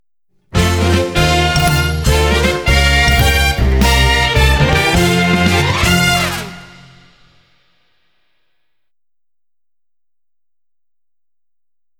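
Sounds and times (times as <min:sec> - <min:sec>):
boss clear fanfare: 0:00.6 - 0:07.4.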